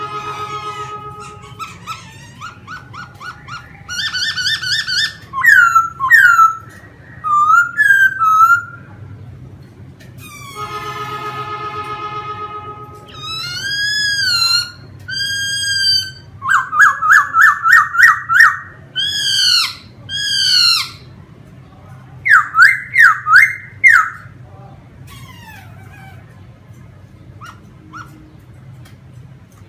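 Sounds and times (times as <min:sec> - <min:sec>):
laughingthrush whistling: 0:00.7 - 0:08.9, 0:13.1 - 0:21.1, 0:22.2 - 0:24.3.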